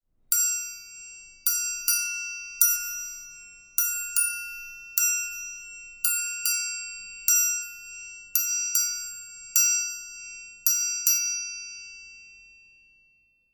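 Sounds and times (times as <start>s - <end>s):
triangle: 0.3s - 13.5s.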